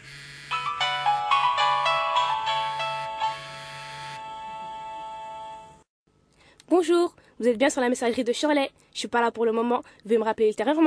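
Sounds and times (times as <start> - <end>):
mobile phone ringtone ringing unanswered: 0.1 - 5.8
faint steady hum: 5.5 - 10.4
speech: 6.8 - 10.8.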